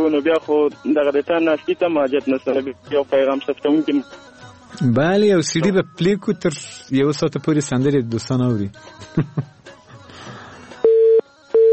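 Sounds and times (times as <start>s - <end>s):
speech: 0.0s - 9.8s
busy tone after a phone call is cut off: 10.8s - 11.7s.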